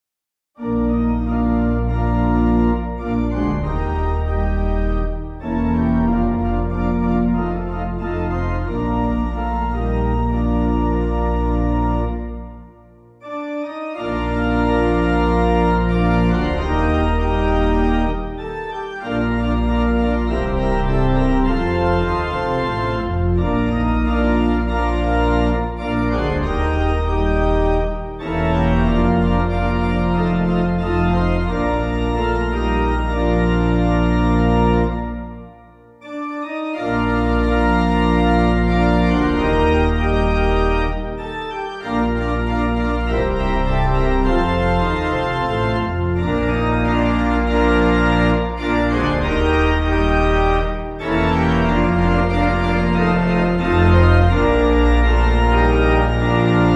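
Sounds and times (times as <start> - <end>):
pipe organ: 0.6 - 56.7.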